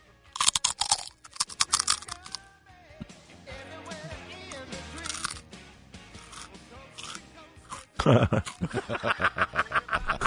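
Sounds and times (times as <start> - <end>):
crunching wasabi mustard potato chips: 0.3 - 2.4, 4.5 - 5.4, 6.2 - 8.7
speech: 8.0 - 9.6
laughter: 8.0 - 10.2.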